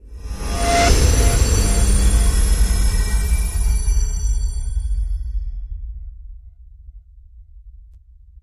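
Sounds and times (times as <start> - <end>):
swell: 0.0 - 5.4.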